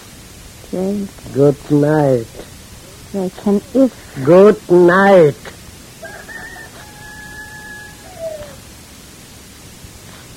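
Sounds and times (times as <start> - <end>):
speech: 0.7 - 2.4, 3.1 - 5.6
rooster crowing: 5.9 - 8.8.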